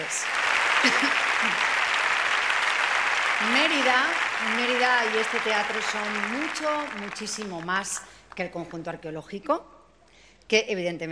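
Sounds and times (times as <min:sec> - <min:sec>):
strong audience applause for an orchestra: 0:00.0 - 0:08.0
speech: 0:00.1 - 0:01.7, 0:03.4 - 0:09.8, 0:10.5 - 0:11.1.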